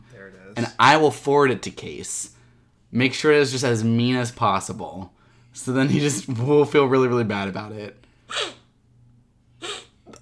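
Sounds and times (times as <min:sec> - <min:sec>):
speech: 0:00.2 - 0:08.6
person sniffing: 0:08.3 - 0:08.7, 0:09.6 - 0:10.0.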